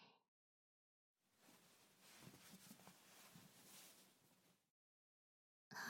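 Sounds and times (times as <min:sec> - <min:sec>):
ear cleaning sounds in right ear: 0:01.4 - 0:04.5.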